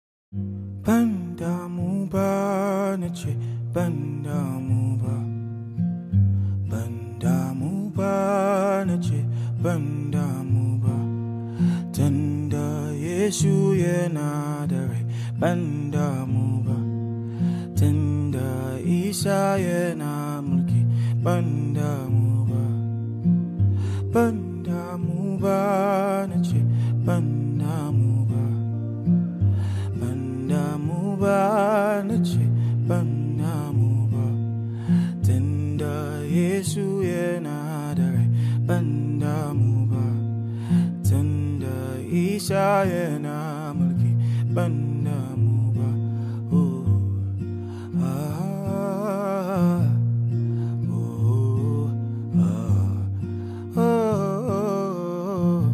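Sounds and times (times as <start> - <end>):
acoustic cover song: 0.4 - 55.7.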